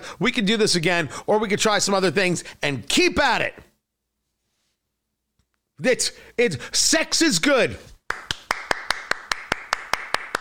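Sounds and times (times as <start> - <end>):
speech: 0.1 - 3.7, 5.8 - 7.9
one person applauding alone: 8.0 - 10.3.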